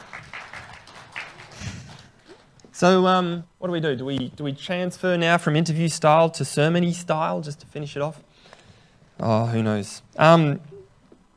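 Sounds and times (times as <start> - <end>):
audience applause: 0.0 - 2.5
speech: 2.8 - 8.3, 9.2 - 10.7.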